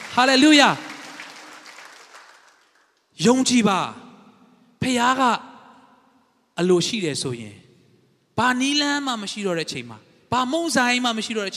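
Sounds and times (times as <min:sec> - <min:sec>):
church congregation clapping to honor God during a Sunday sermon: 0:00.0 - 0:03.2
speech: 0:00.2 - 0:00.9, 0:03.2 - 0:04.0, 0:04.8 - 0:05.5, 0:06.6 - 0:07.6, 0:08.4 - 0:11.5.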